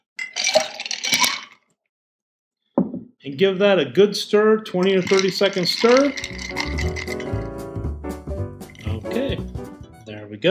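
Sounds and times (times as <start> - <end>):
ice cubes clinking into a mixing glass: 0.2 - 1.6, 4.8 - 7.5, 8.6 - 9.0
speech: 3.2 - 7.3.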